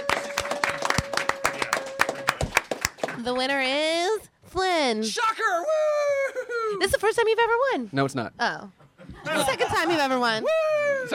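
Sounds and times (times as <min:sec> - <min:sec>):
audience applause: 0:00.0 - 0:03.3
speech: 0:03.2 - 0:11.1
laughter: 0:08.8 - 0:11.1.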